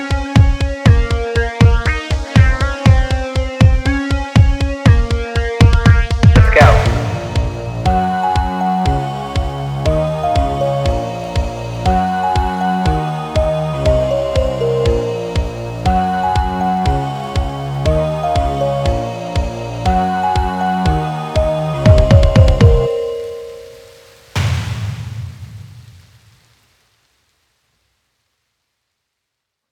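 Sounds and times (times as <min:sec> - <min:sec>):
instrumental music: 0:00.5 - 0:24.2.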